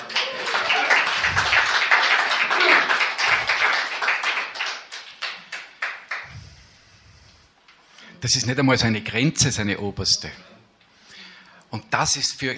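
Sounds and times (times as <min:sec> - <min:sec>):
audience applause: 0:00.0 - 0:06.3
speech: 0:08.2 - 0:10.6, 0:11.7 - 0:12.5.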